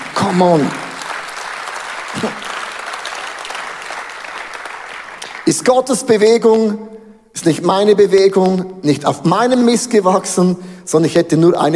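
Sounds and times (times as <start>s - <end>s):
audience applause: 0.0s - 5.5s
speech: 0.2s - 0.8s, 5.5s - 11.7s.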